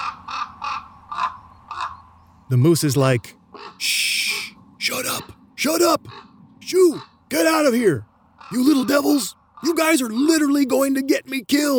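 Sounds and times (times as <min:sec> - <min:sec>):
common raven harsh raspy caws: 0:00.0 - 0:02.0, 0:03.4 - 0:10.4
speech: 0:02.5 - 0:04.0, 0:05.6 - 0:11.7.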